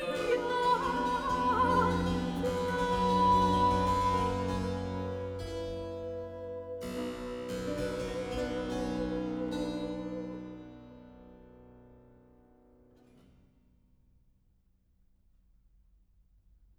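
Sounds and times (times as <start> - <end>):
cantata recitative: 0.0 - 11.0.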